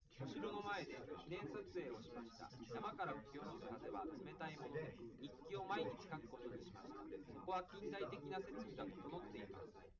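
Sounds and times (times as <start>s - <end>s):
man's voice recorded live: 0.0s - 9.9s.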